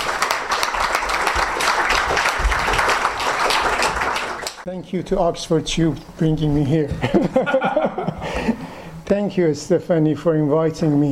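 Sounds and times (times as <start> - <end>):
audience applause at a lecture panel welcoming a professor: 0.0 - 4.6
speech: 4.7 - 11.1
laughter: 7.0 - 8.6.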